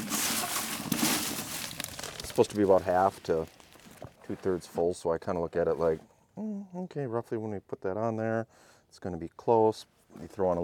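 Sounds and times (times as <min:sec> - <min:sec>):
wood shavings stuffed into a wood duck box: 0:00.0 - 0:04.6
speech: 0:02.4 - 0:03.6, 0:04.3 - 0:10.6.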